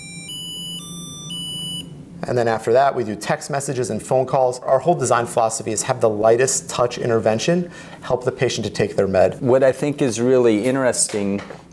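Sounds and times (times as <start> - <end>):
smart pill bottle dose reminder chime: 0.0 - 1.9
speech: 2.2 - 11.6.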